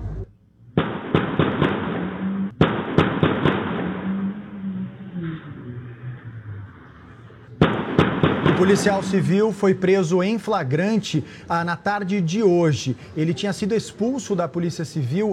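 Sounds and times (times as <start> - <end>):
gunshots fired at a car: 0.7 - 5.4, 7.6 - 10.0
speech: 8.6 - 15.3.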